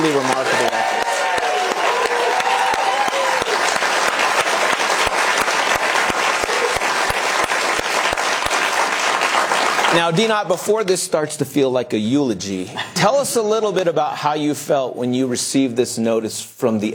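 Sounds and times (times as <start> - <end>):
audience applause: 0.0 - 10.2
speech: 10.0 - 16.9.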